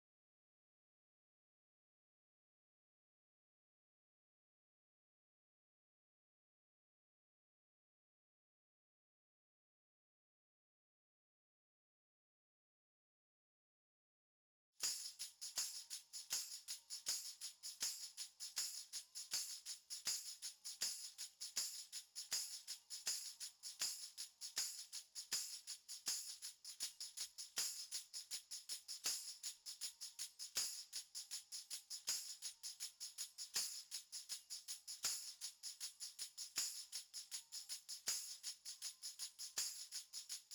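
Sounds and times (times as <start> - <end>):
percussion: 14.8 - 40.5.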